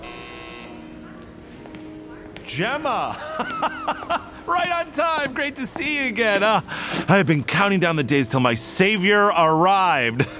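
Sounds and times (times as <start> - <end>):
office intercom buzzer: 0.0 - 1.1
speech: 2.5 - 10.3
laughter: 2.6 - 5.0, 10.1 - 10.3.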